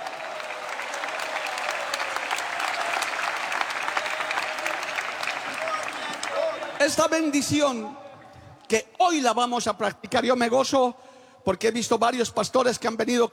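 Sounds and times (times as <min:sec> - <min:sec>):
audience applause: 0:00.0 - 0:07.4
speech: 0:06.8 - 0:08.0, 0:08.7 - 0:13.3.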